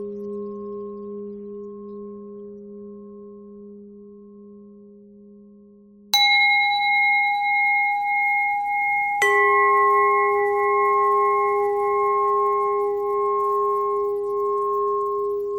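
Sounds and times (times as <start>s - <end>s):
pentatonic bell melody: 6.1s - 15.5s.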